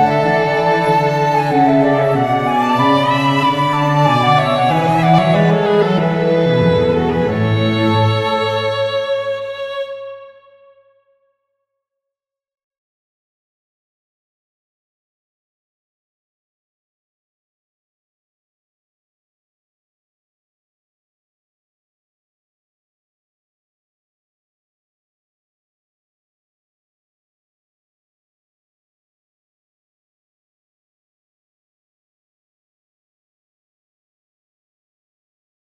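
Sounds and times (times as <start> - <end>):
flute sketch in B minor: 0.0 - 8.9.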